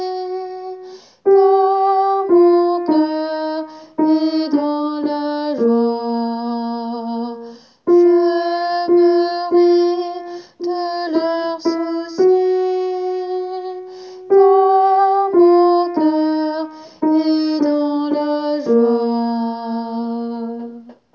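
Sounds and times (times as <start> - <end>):
alto voice singing: 0.0 - 21.0.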